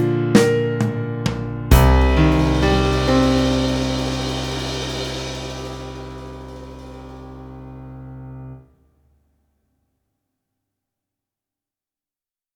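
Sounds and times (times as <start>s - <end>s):
drum kit in a ballad: 0.0s - 8.3s
piano in a ballad: 0.0s - 8.7s.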